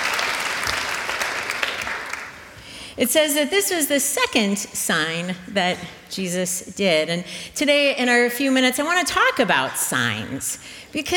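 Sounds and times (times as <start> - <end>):
audience clapping: 0.0 - 2.6
speech: 3.0 - 11.1.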